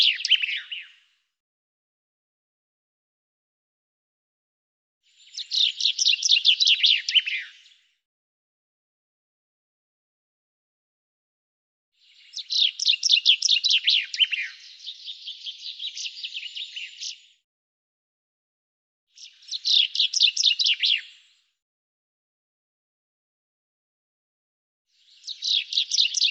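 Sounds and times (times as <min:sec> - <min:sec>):
bird chirping song: 0:00.0 - 0:01.2, 0:05.0 - 0:08.0, 0:12.0 - 0:17.4, 0:19.1 - 0:21.6, 0:24.9 - 0:26.3.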